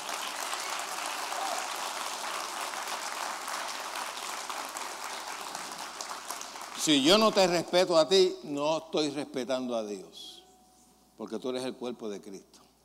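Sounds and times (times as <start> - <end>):
audience applauding: 0.0 - 7.6
speech: 6.8 - 10.4, 11.2 - 12.6.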